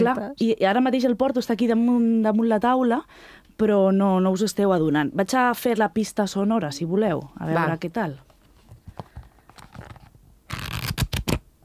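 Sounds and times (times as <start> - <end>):
speech: 0.0 - 8.3
pages of a paper agenda turning: 8.6 - 11.4.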